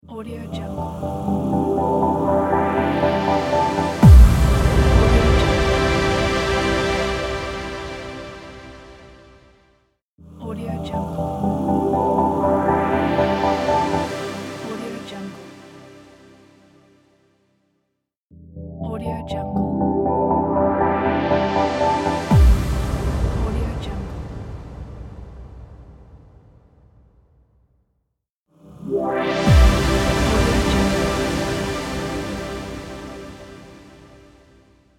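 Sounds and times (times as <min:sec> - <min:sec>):
atmospheric opener: 0:00.7 - 0:09.4, 0:11.0 - 0:16.1, 0:19.4 - 0:26.0, 0:28.7 - 0:34.5.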